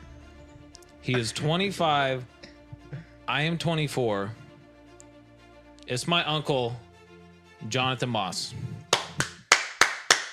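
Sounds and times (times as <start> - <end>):
speech: 1.0 - 2.4, 3.3 - 4.4, 5.9 - 6.8, 7.6 - 8.7
hand clapping: 8.8 - 10.3.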